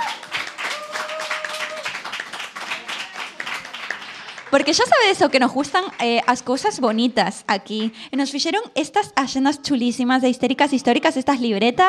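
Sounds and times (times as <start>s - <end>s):
audience applause: 0.0s - 7.1s
speech: 4.5s - 11.8s.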